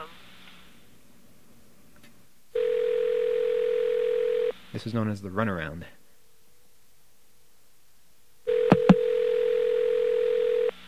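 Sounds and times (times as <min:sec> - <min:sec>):
telephone line ringing tone: 0:02.6 - 0:04.5, 0:08.5 - 0:10.8
speech: 0:04.7 - 0:06.0.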